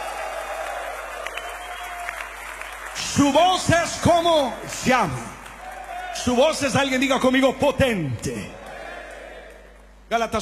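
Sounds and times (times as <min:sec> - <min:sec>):
audience applauding: 0:00.0 - 0:06.5
speech: 0:03.0 - 0:05.3, 0:06.2 - 0:08.6, 0:10.1 - 0:10.3.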